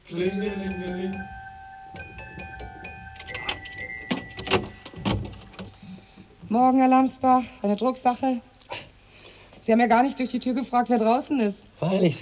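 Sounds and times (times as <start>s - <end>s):
doorbell ringing at a front door: 0.0s - 6.5s
speech: 0.1s - 2.2s, 6.5s - 8.5s, 9.7s - 12.1s
clatter and rustling: 0.2s - 6.4s.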